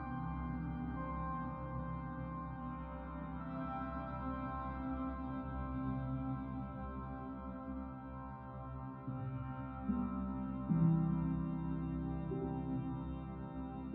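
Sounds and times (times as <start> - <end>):
music: 0.0 - 13.9.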